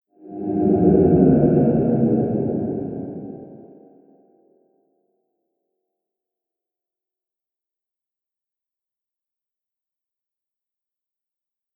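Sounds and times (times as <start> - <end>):
ghost horror sound effect: 0.2 - 3.9.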